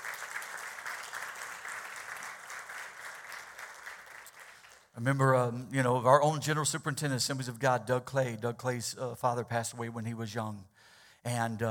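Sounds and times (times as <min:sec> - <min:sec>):
audience applauding with hand claps: 0:00.0 - 0:05.0
speech: 0:05.0 - 0:11.7.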